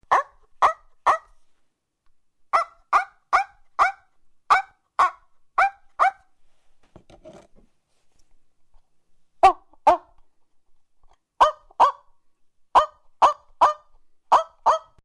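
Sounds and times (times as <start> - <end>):
dog: 0.0 - 1.4, 2.6 - 6.3, 9.4 - 10.2, 11.4 - 12.1, 12.8 - 15.0.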